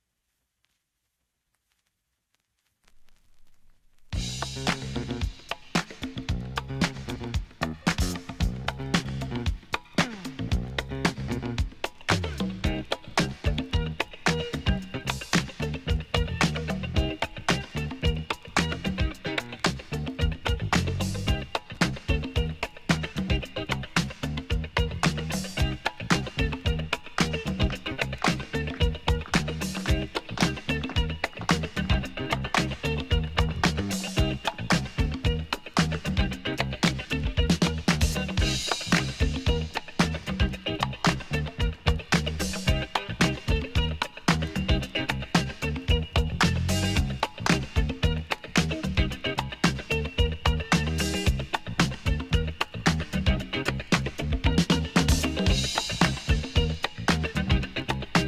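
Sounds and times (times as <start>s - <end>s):
boogie, jazz funk and disco music: 4.1s - 58.2s.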